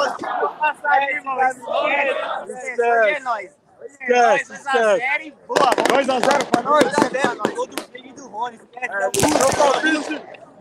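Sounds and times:
football fans shouting and chanting on a bus: 0.0 - 3.2
speech: 0.6 - 10.5.

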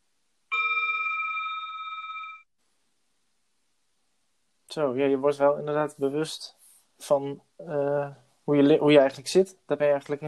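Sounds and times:
small bell ringing: 0.5 - 2.5
speech: 4.7 - 10.2.

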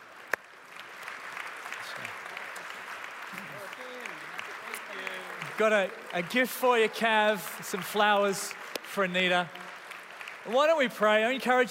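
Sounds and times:
audience standing ovation applause: 0.0 - 11.7
speech: 5.6 - 9.6, 10.4 - 11.7.

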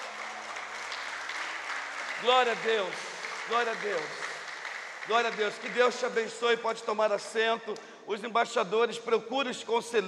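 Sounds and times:
crowd applauding loudly: 0.0 - 6.6
speech: 2.2 - 4.2, 5.1 - 10.0.

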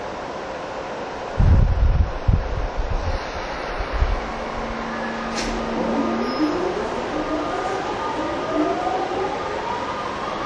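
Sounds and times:
TWR 70-000 series train on a Saikyo Line rapid run rolling rumble: 0.0 - 10.4
train motor whine climbing in pitch as the train picks up speed: 3.2 - 9.5.

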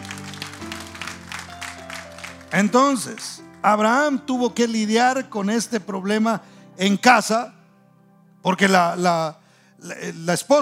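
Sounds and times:
audience clapping: 0.0 - 4.1
held organ-like chords: 0.0 - 10.6
speech: 2.5 - 7.6, 8.4 - 10.6.

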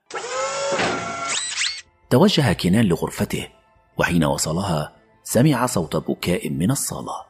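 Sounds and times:
table-cleaning robot motor whirring: 0.1 - 1.8
speech: 2.1 - 7.2.

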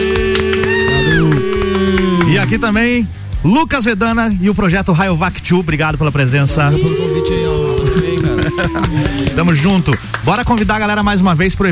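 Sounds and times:
person whooping: 0.0 - 2.7, 6.5 - 9.9
crowd applauding and cheering for the band: 0.0 - 3.0, 6.6 - 11.1
speech: 2.5 - 11.7
laughter: 6.5 - 10.2.

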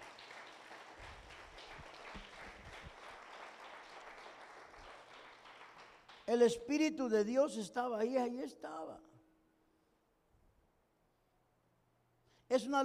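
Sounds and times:
audience applause: 0.0 - 6.3
speech: 6.3 - 9.1, 12.5 - 12.8.

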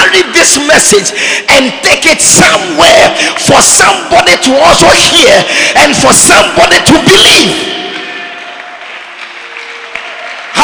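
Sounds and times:
speech: 0.1 - 7.9
crowd clapping: 7.9 - 10.6.

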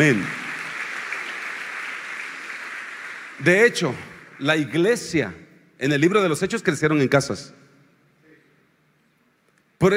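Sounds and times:
speech: 0.0 - 0.4, 3.4 - 7.6, 9.8 - 9.9
crowd applause: 0.0 - 4.6.

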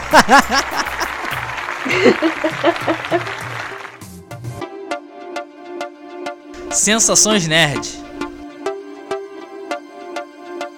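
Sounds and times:
people laughing: 0.0 - 3.9
clapping: 0.0 - 4.2
speech: 0.1 - 1.0, 1.8 - 3.5, 6.8 - 8.0.

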